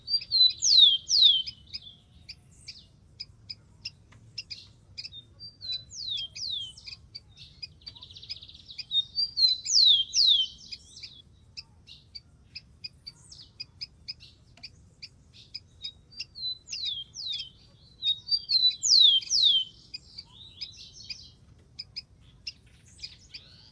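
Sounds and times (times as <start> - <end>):
rufous-collared sparrow singing: 0.0 - 23.6.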